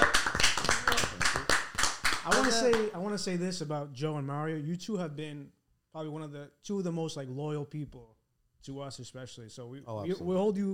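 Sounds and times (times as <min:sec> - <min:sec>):
round of applause from a small group: 0:00.0 - 0:02.9
speech: 0:02.4 - 0:10.7.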